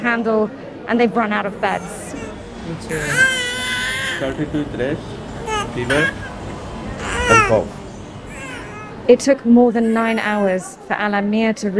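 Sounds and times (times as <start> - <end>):
murmur of adult voices: 0.0 - 11.7
speech: 0.1 - 3.4, 4.2 - 5.2, 5.8 - 6.3, 7.3 - 7.8, 9.1 - 11.7
infants crying in a crowded hospital ward: 1.6 - 4.5, 5.4 - 10.8.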